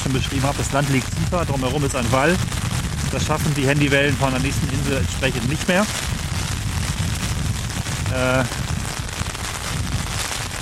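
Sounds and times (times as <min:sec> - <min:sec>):
speech: 0:00.0 - 0:06.2, 0:08.1 - 0:08.6
rain falling: 0:00.0 - 0:10.6.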